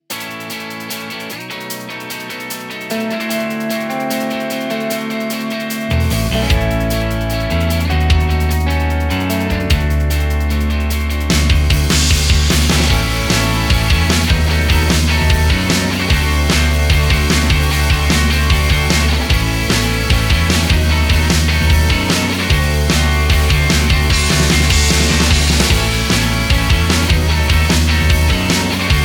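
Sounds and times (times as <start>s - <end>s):
Britpop music: 0.1s - 29.0s.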